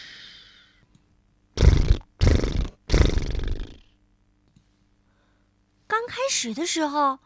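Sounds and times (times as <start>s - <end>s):
loud snoring while sleeping: 1.6s - 3.9s
speech: 6.1s - 7.2s.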